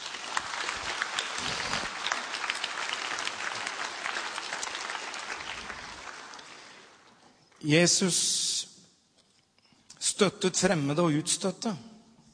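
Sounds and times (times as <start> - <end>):
audience applause: 0.0 - 7.1
speech: 7.6 - 8.4, 10.2 - 11.9.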